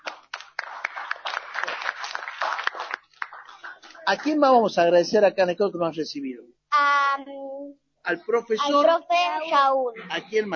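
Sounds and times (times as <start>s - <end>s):
people applauding: 0.0s - 4.4s
speech: 4.1s - 10.5s.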